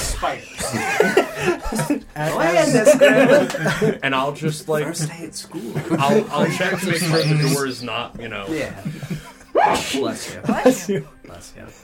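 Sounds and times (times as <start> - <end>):
speech: 0.2 - 11.8
laughter: 0.7 - 2.0, 2.7 - 4.0, 5.6 - 7.8
people talking quietly: 5.8 - 8.0
sneeze: 9.6 - 10.0.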